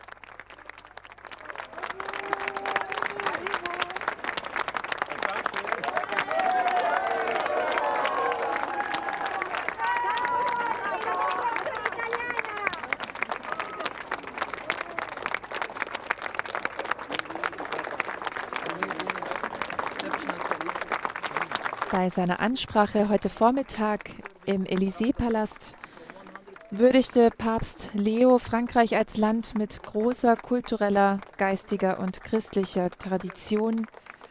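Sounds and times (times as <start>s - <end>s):
crowd cheering with excited shouts: 0.0s - 22.0s, 23.1s - 27.0s
crowd applauding: 0.0s - 34.2s
speech: 22.0s - 25.8s, 26.7s - 34.0s.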